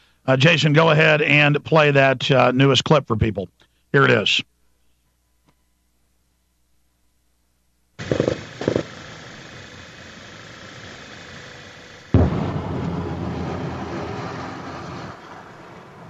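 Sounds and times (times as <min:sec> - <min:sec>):
speech: 0:00.2 - 0:04.5
artillery detonations and explosions in a city: 0:08.0 - 0:09.0, 0:12.2 - 0:16.0.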